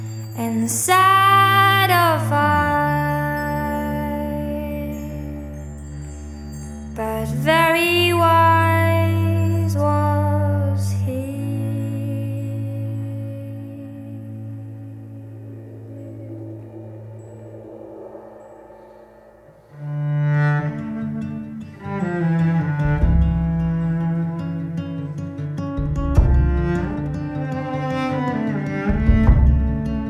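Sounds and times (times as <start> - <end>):
acoustic music: 0.0 - 18.8, 19.5 - 30.0.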